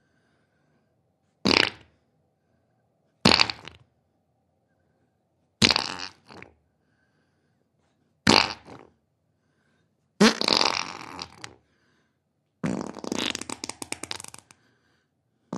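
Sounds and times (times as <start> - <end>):
human fart: 1.4 - 1.9, 3.2 - 3.9, 5.6 - 6.6, 8.2 - 9.0, 10.2 - 11.6, 12.6 - 14.6.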